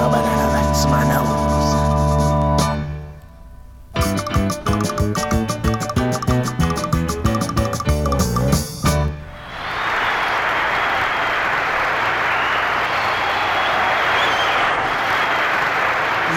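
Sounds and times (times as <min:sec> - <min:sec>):
music of a sung comedy act: 0:00.0 - 0:09.5
audience applause at a talent show: 0:09.4 - 0:16.3.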